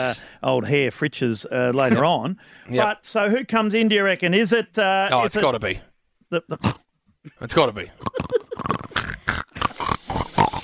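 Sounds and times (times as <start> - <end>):
speech: 0.0 - 8.8
pig grunting and oinking: 8.0 - 10.6.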